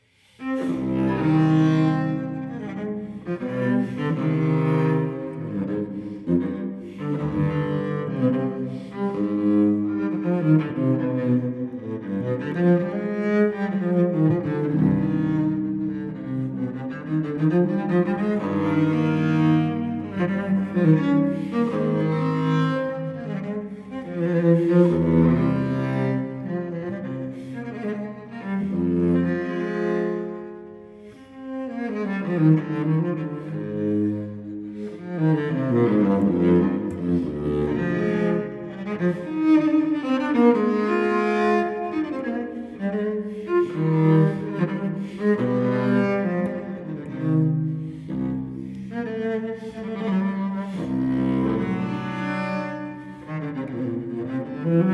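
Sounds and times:
solo cello piece in C minor: 0:00.0 - 0:54.9.

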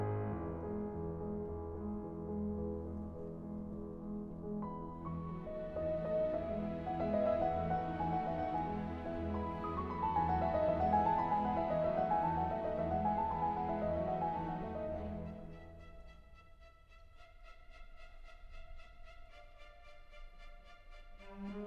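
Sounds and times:
piano concerto in C minor: 0:00.0 - 0:16.4.

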